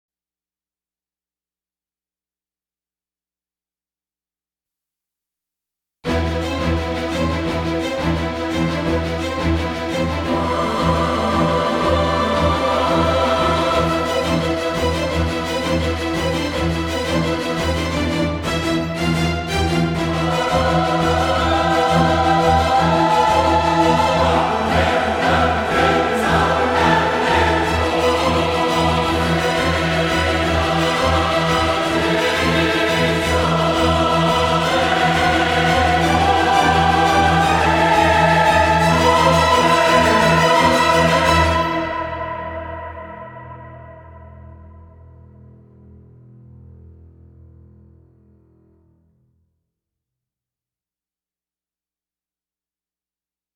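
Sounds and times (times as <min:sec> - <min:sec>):
orchestra: 0:06.1 - 0:44.6
choir: 0:06.2 - 0:45.1.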